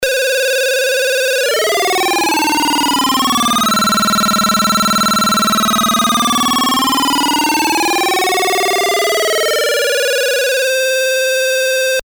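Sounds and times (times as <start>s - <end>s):
chiptune music: 0.1s - 12.0s.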